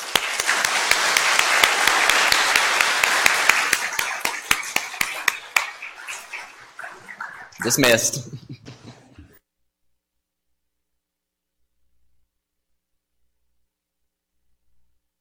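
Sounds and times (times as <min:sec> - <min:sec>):
audience applause: 0:00.0 - 0:09.3
laughter: 0:00.4 - 0:06.0, 0:06.8 - 0:09.4
speech: 0:07.6 - 0:08.6.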